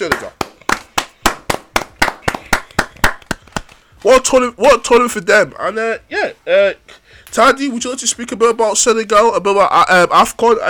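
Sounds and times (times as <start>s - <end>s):
hand clapping: 0.0s - 3.9s
speech: 4.0s - 10.6s.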